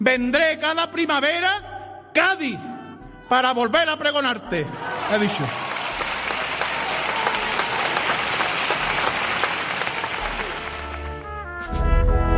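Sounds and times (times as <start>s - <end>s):
speech: 0.0s - 2.7s, 3.3s - 5.7s
large audience applause: 4.8s - 11.4s.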